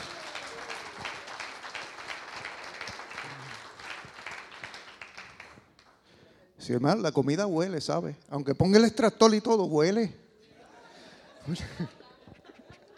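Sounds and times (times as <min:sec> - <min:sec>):
audience applauding: 0:00.0 - 0:06.1
speech: 0:06.6 - 0:10.2, 0:11.5 - 0:12.0
laughter: 0:10.4 - 0:12.9.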